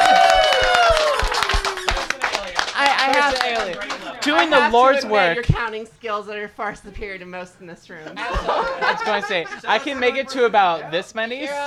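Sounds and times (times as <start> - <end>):
applause: 0.0 - 4.7
laughter: 0.0 - 5.0, 8.0 - 11.6
speech: 3.3 - 11.6.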